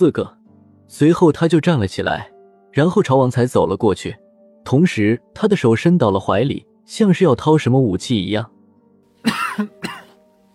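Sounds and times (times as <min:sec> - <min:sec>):
speech: 0:00.0 - 0:08.6
man coughing: 0:09.2 - 0:10.2.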